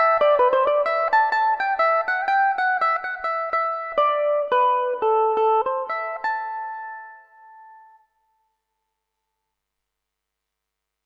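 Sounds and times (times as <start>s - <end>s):
Irish mandolin melody in A Dorian: 0.0s - 8.4s.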